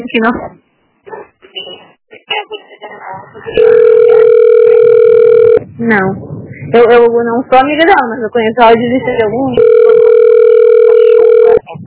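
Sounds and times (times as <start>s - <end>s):
speech: 0.0s - 0.6s, 5.8s - 9.8s
steady telephone hold tone: 3.5s - 5.7s, 9.6s - 11.7s.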